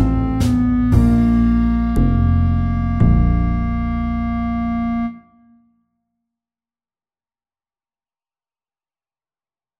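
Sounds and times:
slow blues: 0.0 - 5.1.

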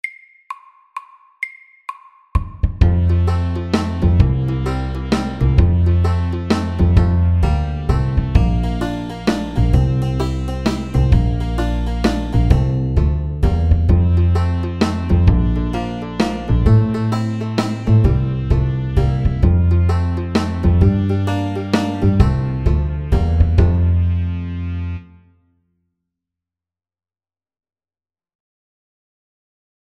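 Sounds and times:
country shuffle music: 2.8 - 24.8.

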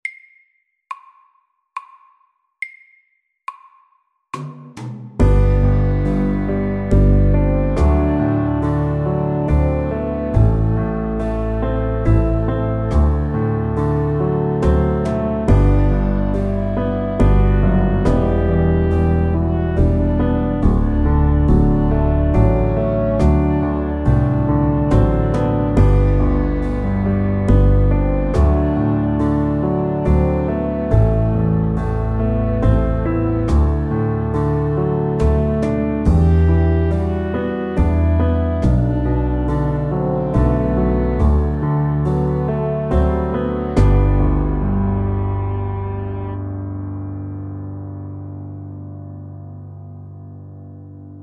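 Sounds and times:
soft rock music: 5.2 - 47.8.

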